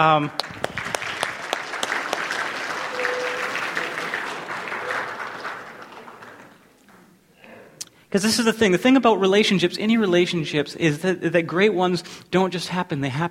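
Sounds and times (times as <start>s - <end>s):
speech: 0.0s - 0.6s, 8.1s - 13.2s
audience applause: 0.3s - 7.1s.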